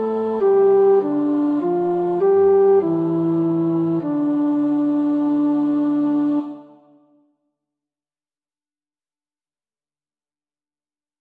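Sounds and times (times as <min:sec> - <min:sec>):
tenor singing: 0:00.0 - 0:07.1.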